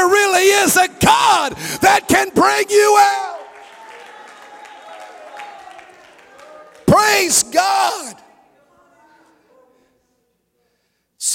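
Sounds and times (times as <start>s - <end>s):
speech: 0.7s - 3.4s, 7.0s - 8.2s
audience clapping: 2.8s - 8.2s.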